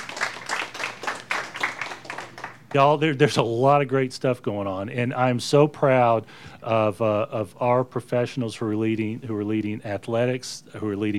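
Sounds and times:
audience applause: 0.0 - 2.8
speech: 2.7 - 11.1.

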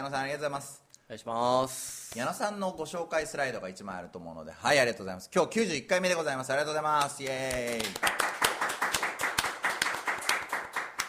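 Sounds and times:
speech: 0.0 - 8.3
audience applause: 7.5 - 11.0.

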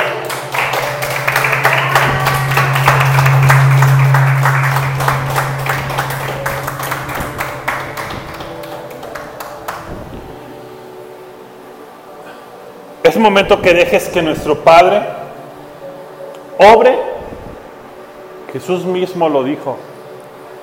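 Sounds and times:
audience applause: 0.0 - 10.0
steady low musical drone: 0.0 - 20.6
speech: 13.2 - 15.2, 16.6 - 17.0, 18.6 - 19.9.

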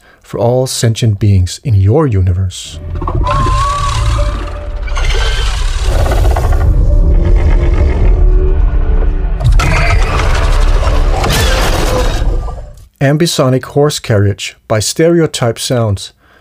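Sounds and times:
speech: 0.3 - 3.6, 13.0 - 16.2
alien creature vocalization with roars, gurgles, snarls and screeches: 2.8 - 12.8.

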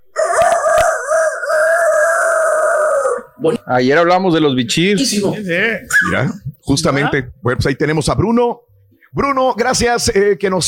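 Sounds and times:
rooster crowing: 0.0 - 3.4
speech: 3.4 - 10.6.

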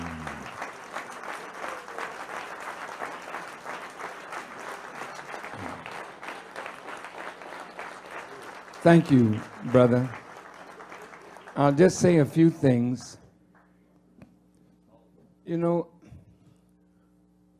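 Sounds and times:
audience applause: 0.0 - 12.3
speech: 8.8 - 10.2, 11.6 - 13.2, 15.5 - 15.9.

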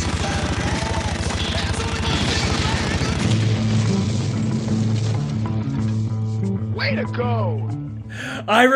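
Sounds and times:
shooting and explosions from a video game: 0.0 - 6.4
speech: 6.9 - 7.7, 8.4 - 8.7.

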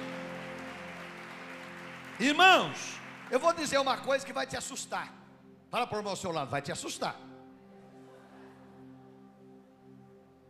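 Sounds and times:
audience applauding: 0.0 - 4.5
speech: 2.2 - 7.3.

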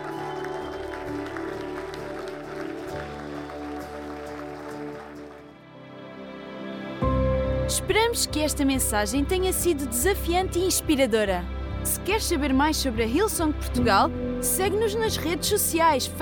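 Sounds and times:
audience applauding: 0.0 - 5.8
speech: 7.7 - 16.2.

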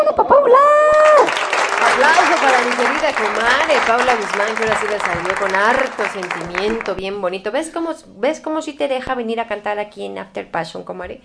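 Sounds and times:
whoops and cheering voices: 0.0 - 2.2
audience applause: 0.9 - 7.0
speech: 2.4 - 11.2.

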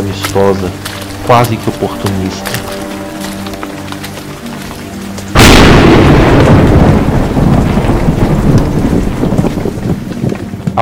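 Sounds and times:
rain: 0.0 - 10.7
steady wind: 0.0 - 10.7
speech: 0.1 - 2.6
loud thunderclap: 5.3 - 10.6.

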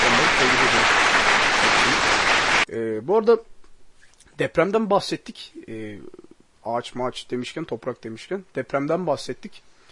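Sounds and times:
applause: 0.0 - 2.7
speech: 3.0 - 3.5, 4.4 - 9.7.

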